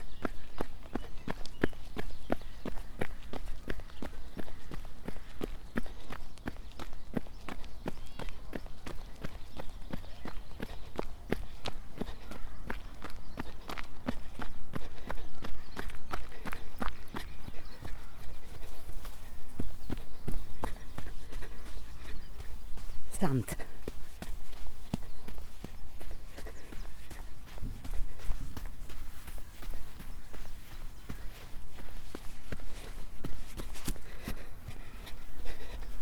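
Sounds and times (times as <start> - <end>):
footsteps on a macadam path: 0.0 - 35.9
speech: 23.2 - 23.6.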